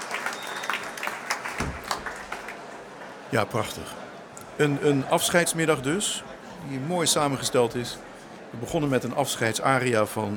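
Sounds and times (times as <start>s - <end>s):
audience applauding in a large concert hall: 0.0s - 3.3s
speech: 3.3s - 4.0s, 4.6s - 10.3s.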